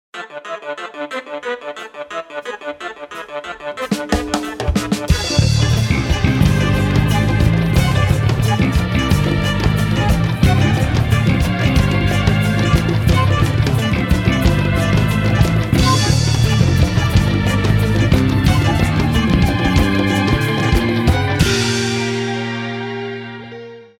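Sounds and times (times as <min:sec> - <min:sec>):
chimbanguele drumming: 0:03.8 - 0:22.8.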